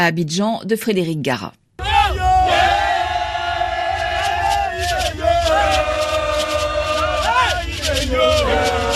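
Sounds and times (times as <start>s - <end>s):
speech: 0.0s - 1.6s
supporters of Simone Gbagbo and the FPI chanting slogans in Cocody, Abidjan: 1.8s - 8.9s.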